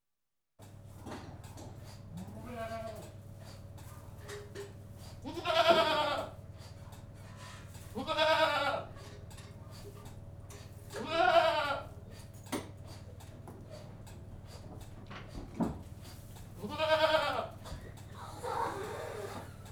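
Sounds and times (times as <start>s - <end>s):
goat bleating inside a goat house: 2.2s - 3.2s, 5.2s - 6.4s, 7.9s - 9.0s, 11.0s - 11.9s, 16.6s - 19.4s.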